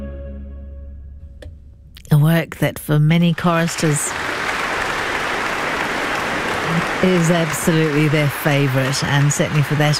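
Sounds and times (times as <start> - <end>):
speech: 2.2 - 4.3, 7.0 - 9.9
audience applause at a choral concert: 3.4 - 9.9.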